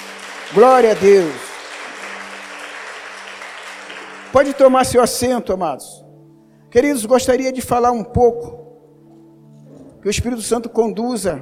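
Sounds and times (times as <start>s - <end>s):
audience applauding: 0.0s - 4.9s
speech: 0.5s - 1.5s, 4.3s - 6.0s, 6.7s - 8.6s, 10.0s - 11.3s.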